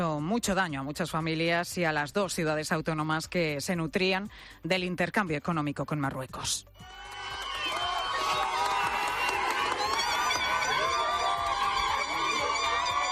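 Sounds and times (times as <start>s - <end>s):
speech: 0.0s - 7.2s
crowd cheering and applauding at border: 6.8s - 13.1s
shrill calls: 6.8s - 13.1s.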